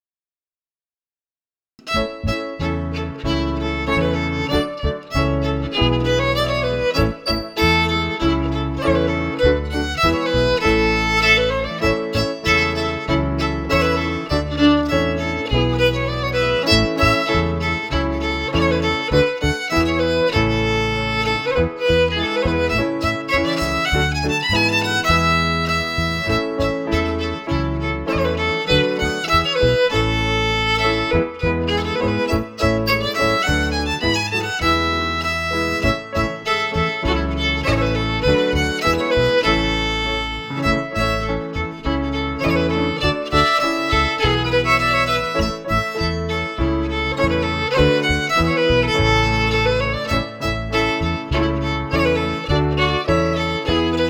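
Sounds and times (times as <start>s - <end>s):
fiddle: 1.8s - 54.0s.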